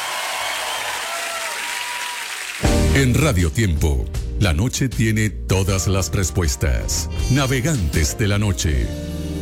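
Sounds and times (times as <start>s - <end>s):
loud applause: 0.0s - 2.7s
speech: 3.0s - 9.1s.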